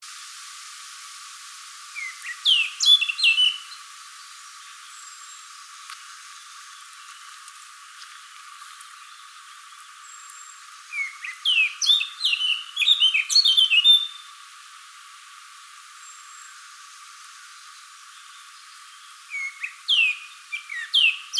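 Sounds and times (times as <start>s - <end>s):
Eurasian blackcap singing: 2.0s - 3.6s, 10.9s - 14.2s, 19.3s - 21.3s.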